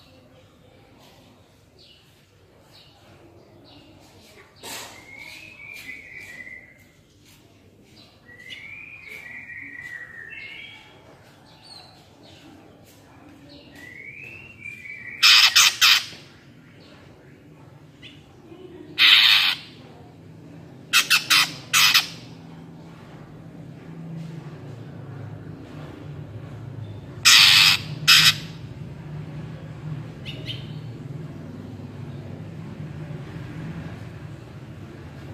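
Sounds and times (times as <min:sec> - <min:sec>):
greater green leafbird singing: 0:04.6 - 0:17.4, 0:18.0 - 0:20.0, 0:20.9 - 0:22.4, 0:26.8 - 0:28.6, 0:30.2 - 0:32.3.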